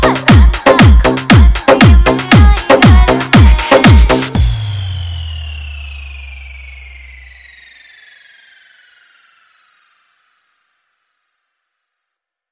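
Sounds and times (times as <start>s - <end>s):
Haryanvi DJ remix music: 0.0s - 5.8s.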